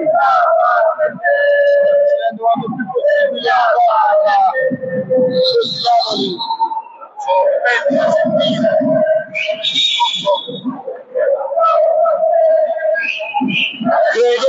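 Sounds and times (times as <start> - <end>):
football fans chanting in stadium: 0.0 - 14.4
whistles: 5.2 - 7.2, 8.0 - 10.8, 11.7 - 14.4.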